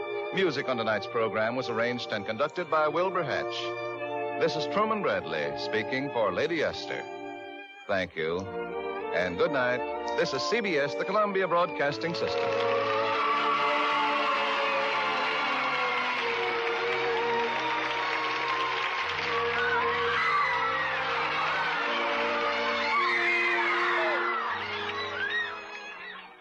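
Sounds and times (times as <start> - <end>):
speech: 0.3 - 7.2, 7.9 - 12.9
radio studio audience cheering, whooping and applauding: 12.0 - 26.4.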